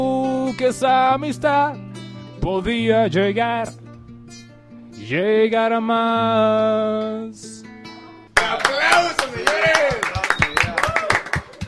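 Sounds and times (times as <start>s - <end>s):
speech: 0.0s - 1.8s, 2.4s - 3.8s, 5.0s - 7.6s
applause: 8.4s - 11.6s
people shouting and cheering: 8.4s - 11.6s.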